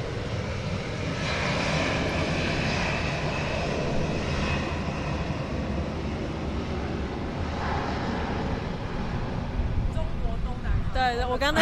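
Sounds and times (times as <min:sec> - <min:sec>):
airplane flying overhead: 0:00.0 - 0:11.6
speech: 0:11.0 - 0:11.6.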